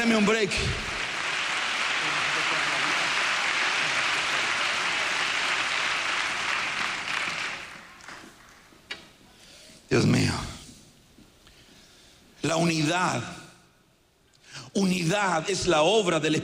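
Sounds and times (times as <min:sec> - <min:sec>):
speech: 0:00.0 - 0:00.9, 0:12.6 - 0:13.4, 0:14.8 - 0:16.4
audience applauding: 0:00.0 - 0:08.8.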